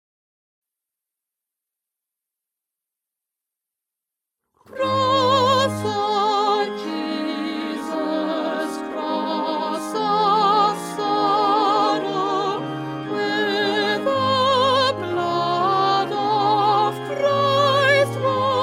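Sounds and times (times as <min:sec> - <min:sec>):
soprano singing: 0:04.7 - 0:18.6.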